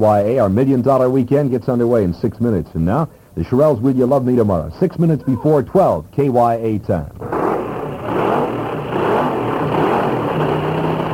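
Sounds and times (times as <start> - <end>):
speech: 0.0 - 7.2
fuel dragster engines revving at Half Moon Bay Drag Strip: 7.1 - 11.1.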